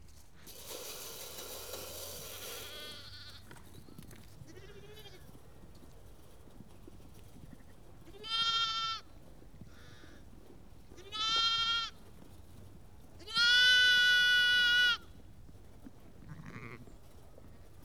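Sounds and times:
sheep bleating: 8.1 - 9.0, 11.0 - 12.0, 13.2 - 15.0, 16.2 - 16.9.

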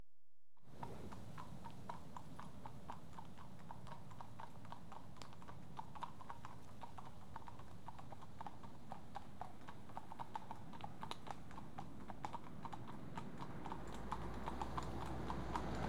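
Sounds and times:
two horses' hooves clopping at a walk: 0.8 - 15.8.

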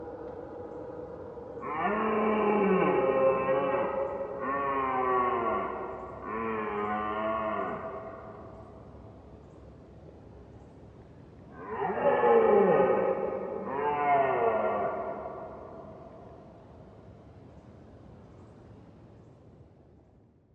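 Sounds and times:
red deer roaring: 1.6 - 8.4, 11.5 - 16.0.

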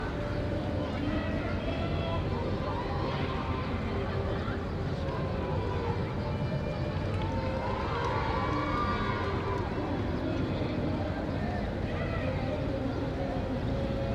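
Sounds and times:
large crowd at City Place in Chile: 0.0 - 14.1
music at City Place in Chile: 0.0 - 14.1.

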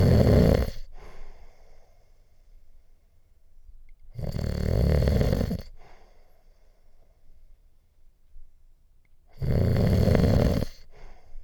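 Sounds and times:
man snoring in sleep: 0.0 - 0.8, 4.2 - 5.7, 9.4 - 10.8.

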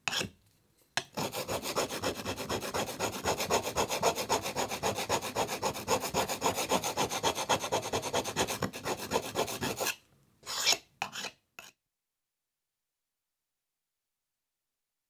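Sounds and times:
chisel sharpened on a grindstone: 0.0 - 0.3, 1.0 - 11.7.

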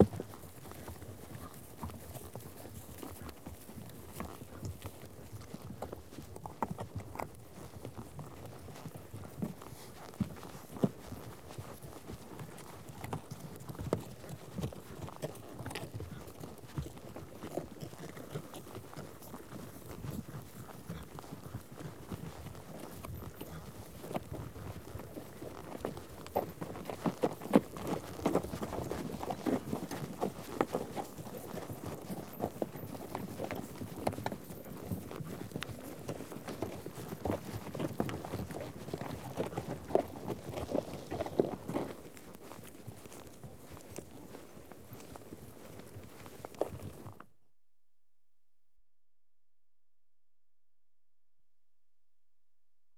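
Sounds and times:
horse hooves clopping over ground: 0.0 - 47.4.

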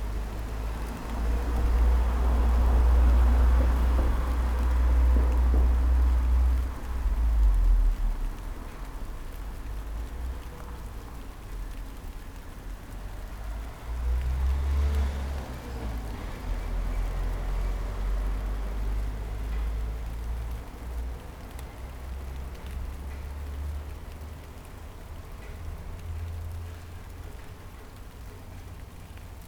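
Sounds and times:
rain on a street: 0.0 - 29.4.

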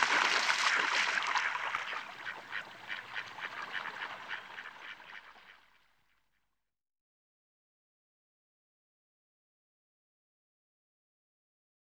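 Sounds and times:
rural lake ambience in early spring early morning: 0.0 - 5.6.

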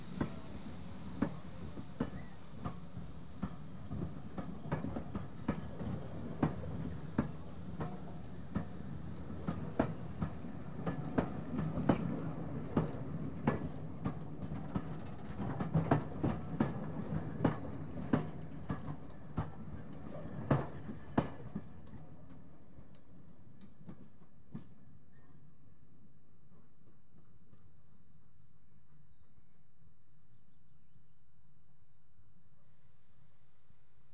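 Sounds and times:
train approaching and stopping: 0.0 - 26.5.

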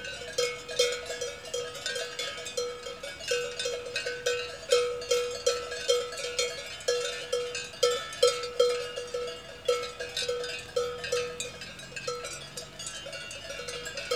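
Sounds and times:
large cowbells in Switzerland: 0.0 - 14.1.

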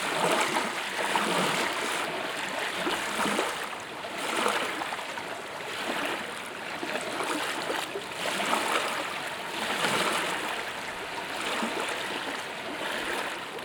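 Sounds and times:
water lapping at a boat ramp in Savannah: 0.0 - 13.5.

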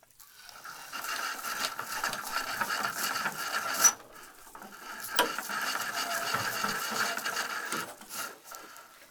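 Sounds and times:
boat pulley pulling and dropping 3 pound weight: 1.9 - 8.2.

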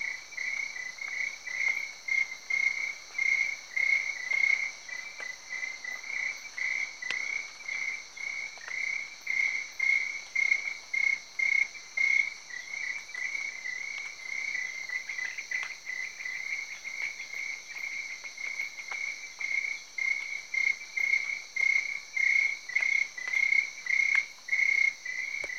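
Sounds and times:
crickets chirping in Cameroon: 0.0 - 25.5.

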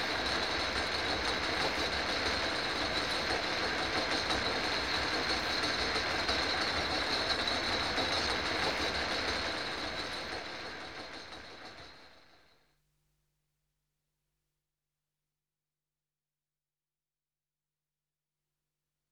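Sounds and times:
funicular railway in Prague recorded outside: 0.0 - 12.4.

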